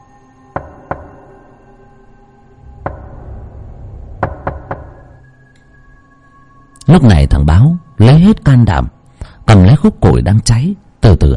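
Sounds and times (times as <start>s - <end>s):
low steady hum: 0.0s - 11.3s
knocking on a door: 0.6s - 1.3s, 2.8s - 3.4s, 4.2s - 5.2s
speech: 6.9s - 11.3s.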